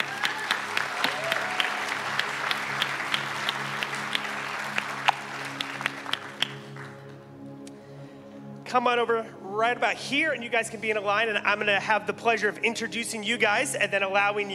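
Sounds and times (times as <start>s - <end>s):
audience applause: 0.0s - 7.0s
speech: 8.7s - 14.5s.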